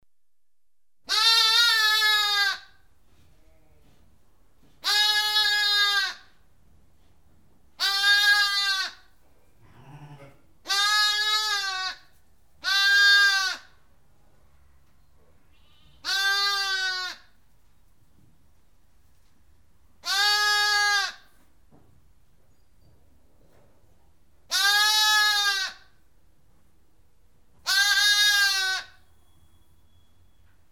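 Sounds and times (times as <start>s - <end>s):
lamb bleating: 1.1s - 2.8s, 4.8s - 6.3s, 7.8s - 9.1s, 9.7s - 13.8s, 15.5s - 17.4s, 20.0s - 21.3s, 24.5s - 26.0s, 27.6s - 29.0s.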